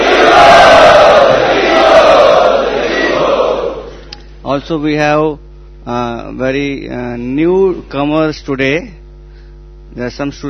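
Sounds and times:
large crowd chanting to welcome guests at the Prerana festival in Chowpatty: 0.0s - 3.9s
speech: 4.6s - 9.0s, 10.0s - 10.4s.

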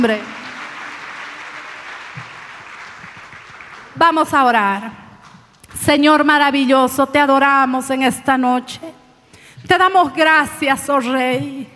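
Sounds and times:
speech: 0.0s - 0.4s, 4.0s - 5.0s, 5.8s - 9.0s, 9.6s - 11.7s
audience applause: 0.0s - 4.0s.

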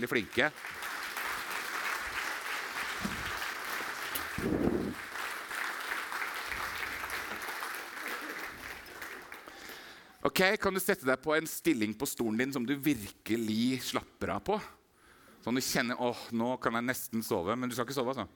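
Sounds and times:
speech: 0.0s - 0.9s, 10.2s - 14.8s, 15.4s - 18.3s
audience applause: 0.0s - 10.0s.

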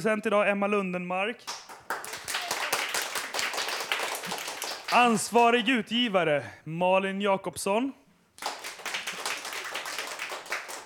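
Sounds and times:
speech: 0.0s - 1.6s, 4.9s - 8.0s
crowd applause: 1.5s - 5.3s, 8.4s - 10.8s.

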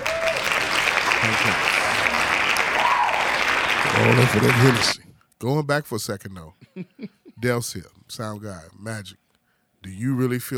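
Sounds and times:
hand claps from many people: 0.0s - 5.0s
speech: 4.0s - 9.2s, 9.8s - 10.5s.

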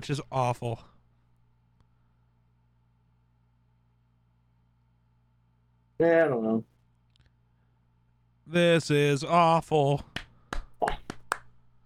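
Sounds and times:
speech: 0.0s - 0.9s, 6.0s - 6.7s, 8.5s - 10.1s
hands clapping: 10.0s - 11.6s.

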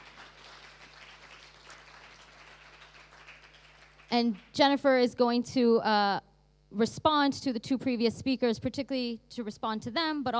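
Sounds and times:
audience applause: 0.0s - 4.5s
speech: 4.1s - 10.3s.

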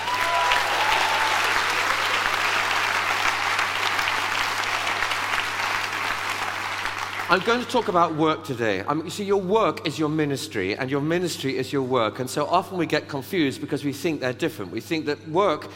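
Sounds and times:
round of applause: 0.0s - 8.0s
speech: 7.3s - 15.7s.

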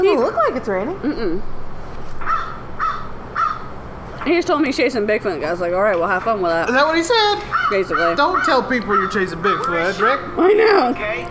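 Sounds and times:
speech: 0.2s - 1.6s, 4.2s - 11.2s
bird cawing: 2.2s - 3.8s, 7.4s - 10.2s.

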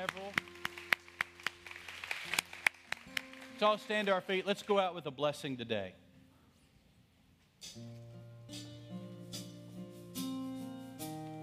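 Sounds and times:
audience applause: 0.0s - 4.5s
speech: 3.6s - 6.0s.

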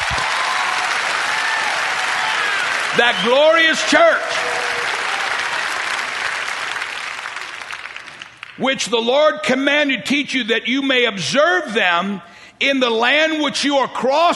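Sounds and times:
audience clapping: 0.0s - 8.6s
speech: 3.0s - 4.9s, 8.6s - 14.3s.

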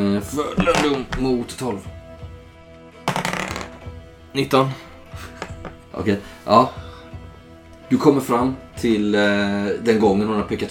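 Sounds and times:
speech: 0.2s - 2.0s, 4.4s - 5.3s, 6.0s - 6.8s, 7.9s - 10.6s
dice being rolled: 0.6s - 1.3s, 3.1s - 3.8s.

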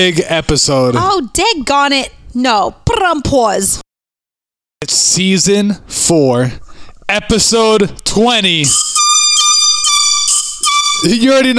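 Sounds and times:
speech: 0.0s - 3.8s, 4.8s - 9.2s, 11.0s - 11.5s
air horn sound effect: 8.7s - 11.5s.

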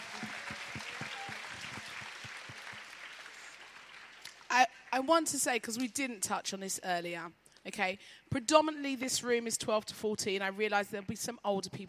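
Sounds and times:
audience applause: 0.0s - 4.5s
speech: 4.6s - 11.8s.

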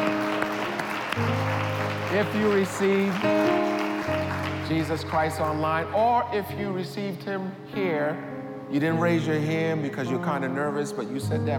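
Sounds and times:
audience clapping: 0.0s - 5.9s
organ-like chords: 0.0s - 11.5s
speech: 2.2s - 11.5s.

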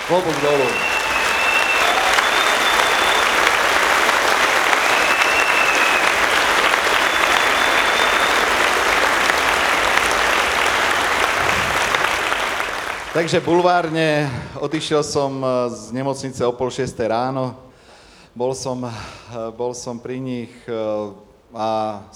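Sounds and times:
large audience applause for all mothers: 0.0s - 14.3s
speech: 0.1s - 1.0s, 13.2s - 17.6s, 18.4s - 22.1s.

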